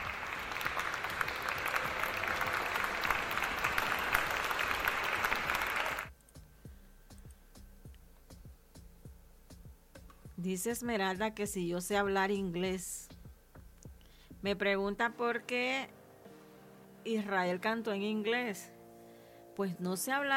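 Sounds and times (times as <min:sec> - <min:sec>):
crowd applause: 0:00.0 - 0:06.1
speech: 0:10.5 - 0:13.0, 0:14.4 - 0:16.0, 0:17.0 - 0:18.7, 0:19.6 - 0:20.3.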